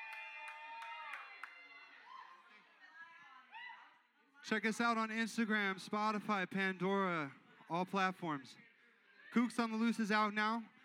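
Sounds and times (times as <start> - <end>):
audience applause: 0.0 - 1.8
speech: 4.5 - 8.6, 9.3 - 10.7.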